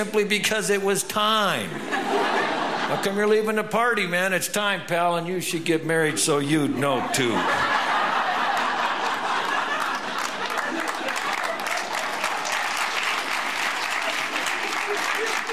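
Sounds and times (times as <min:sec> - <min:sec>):
speech: 0:00.0 - 0:07.9
laughter: 0:01.6 - 0:03.4, 0:06.2 - 0:15.5
audience applause: 0:07.3 - 0:15.5.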